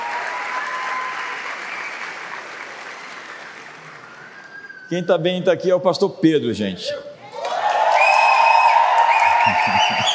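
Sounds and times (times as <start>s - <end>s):
audience applause: 0.0s - 4.5s, 7.4s - 10.1s
speech: 4.9s - 7.1s
laughter: 9.2s - 10.1s.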